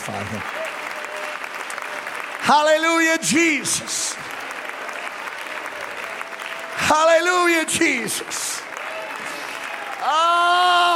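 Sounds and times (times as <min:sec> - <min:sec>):
church congregation clapping during a worship service: 0:00.0 - 0:10.9
speech: 0:00.1 - 0:00.6, 0:02.5 - 0:04.4, 0:06.9 - 0:08.7, 0:10.0 - 0:10.9.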